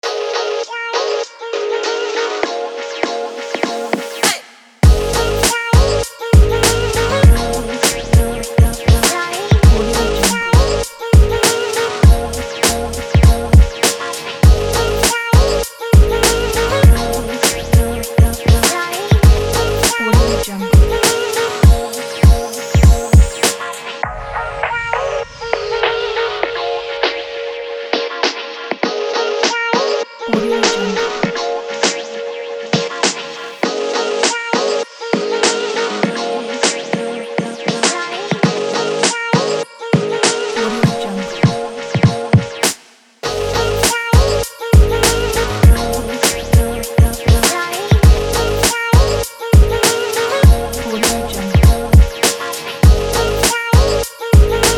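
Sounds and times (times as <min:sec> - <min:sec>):
hip hop music: 0:00.0 - 0:54.7.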